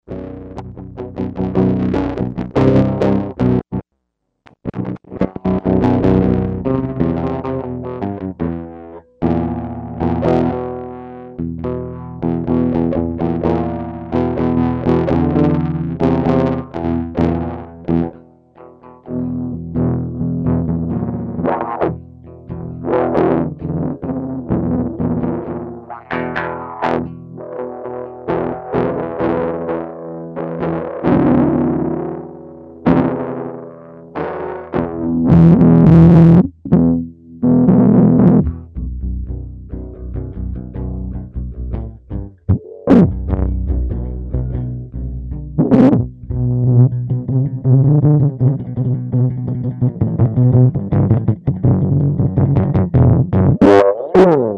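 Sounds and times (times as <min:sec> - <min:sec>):
guitar: 0:00.0 - 0:54.5.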